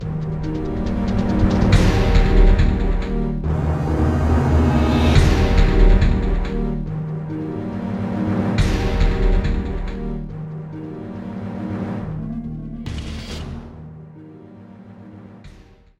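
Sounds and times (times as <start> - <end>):
combat background music: 0.0 - 15.9.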